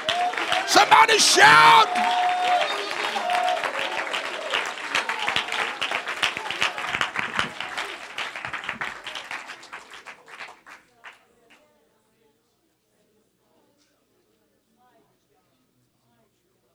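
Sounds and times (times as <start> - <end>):
crowd, audience clapping hands: 0.0 - 11.2
speech: 0.8 - 2.6.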